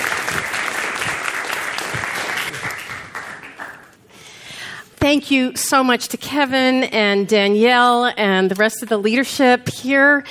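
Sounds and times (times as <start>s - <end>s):
audience applauding to welcome a speaker at a lecture: 0.0s - 4.0s
speech: 5.1s - 10.2s.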